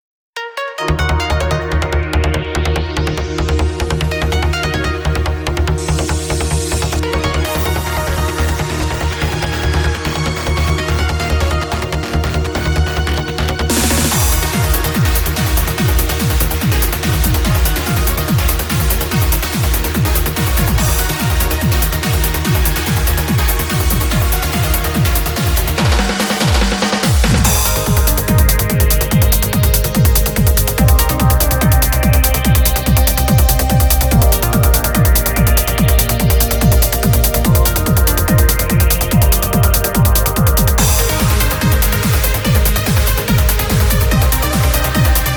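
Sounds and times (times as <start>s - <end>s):
instrumental music: 0.4s - 45.3s.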